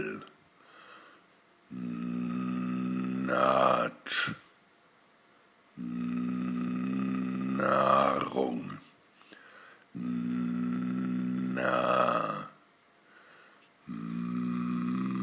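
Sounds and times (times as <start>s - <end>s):
voice exercises on nasal length: 0.0s - 1.0s, 1.7s - 4.5s, 5.7s - 15.2s.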